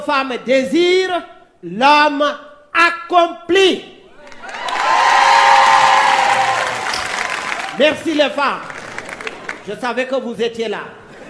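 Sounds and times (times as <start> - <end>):
speech: 0.0 - 3.9, 7.8 - 8.7, 9.6 - 11.0
high-pitched cheering and whooping: 4.2 - 8.0
crowd applause: 4.3 - 9.8.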